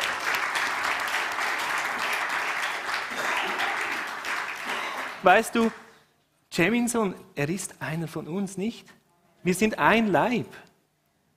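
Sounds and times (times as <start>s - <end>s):
church congregation applause: 0.0s - 6.0s
speech: 5.2s - 5.8s, 6.6s - 10.7s.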